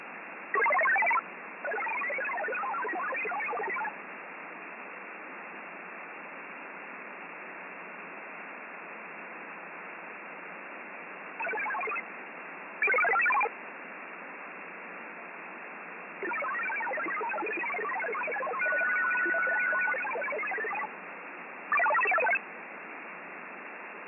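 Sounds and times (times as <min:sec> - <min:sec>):
satellite radio data signal: 0:00.5 - 0:04.0, 0:11.4 - 0:12.0, 0:12.8 - 0:13.5, 0:16.2 - 0:20.9, 0:21.7 - 0:22.4.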